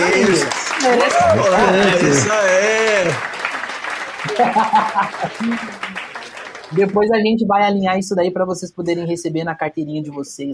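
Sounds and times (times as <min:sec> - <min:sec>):
laughter: 0:00.0 - 0:06.3
applause: 0:00.0 - 0:07.1
speech: 0:00.1 - 0:03.3, 0:04.3 - 0:06.0, 0:06.7 - 0:10.5.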